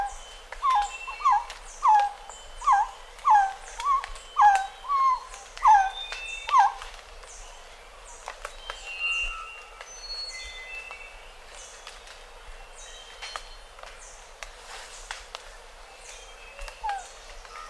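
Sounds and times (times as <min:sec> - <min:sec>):
Resplendent Quetzal calling: 0:00.0 - 0:06.9, 0:16.6 - 0:17.6.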